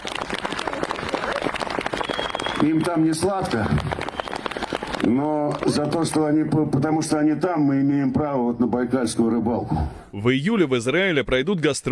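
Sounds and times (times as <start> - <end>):
audience applauding for soldiers: 0.0 - 6.4
speech: 2.6 - 4.0, 5.0 - 11.9.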